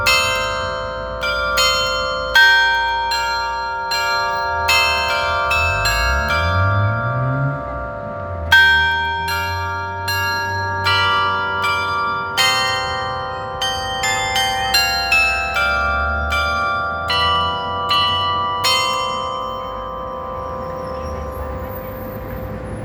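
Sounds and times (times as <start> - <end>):
Glockenspiel chiming in Donauwörth: 0.0 - 22.7.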